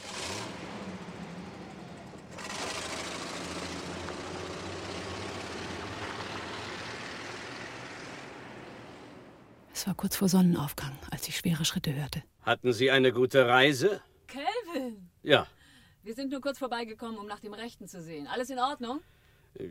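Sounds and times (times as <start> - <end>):
cold car engine starting with hollow rumble: 0.0 - 9.7
speech: 9.8 - 14.4, 15.2 - 19.6.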